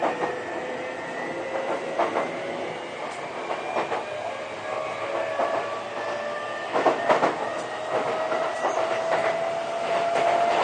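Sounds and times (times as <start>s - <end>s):
Sotetsu 20000 series train running between Yokohama and Shonandai: 0.0s - 10.6s.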